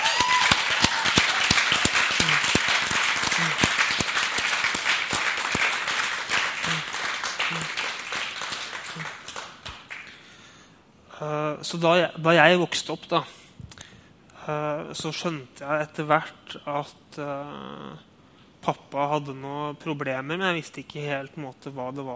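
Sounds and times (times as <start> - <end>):
audience applause: 0.0 - 10.1
speech: 11.2 - 13.4, 14.4 - 22.1.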